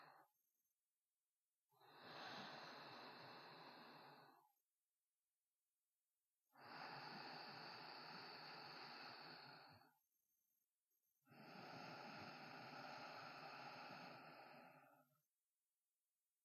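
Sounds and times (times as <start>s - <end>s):
sparse sleeping breaths: 1.8s - 4.5s, 6.6s - 10.0s, 11.3s - 15.2s.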